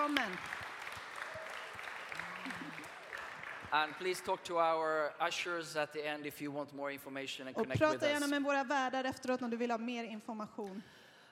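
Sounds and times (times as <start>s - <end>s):
audience applause: 0.0s - 5.0s
speech: 0.1s - 0.6s, 3.7s - 11.0s.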